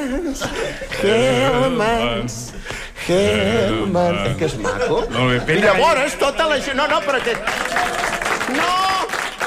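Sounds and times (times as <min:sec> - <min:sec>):
laughter: 0:00.1 - 0:01.8, 0:04.0 - 0:08.0
speech: 0:00.4 - 0:02.5, 0:03.1 - 0:08.8
audience applause: 0:06.7 - 0:09.4.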